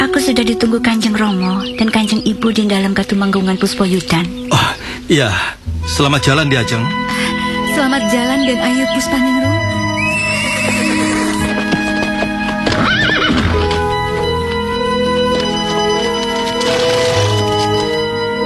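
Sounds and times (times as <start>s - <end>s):
speech: 0.1s - 9.6s
horse galloping: 9.6s - 18.3s
horse whinnying: 9.9s - 14.3s, 15.0s - 18.2s.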